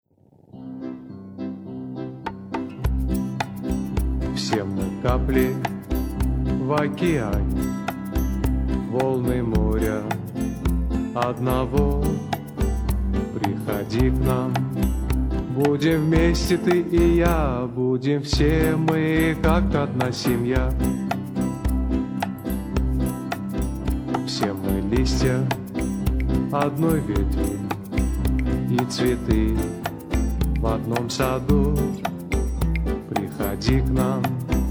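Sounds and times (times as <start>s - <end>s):
Russian song: 0.5s - 34.6s.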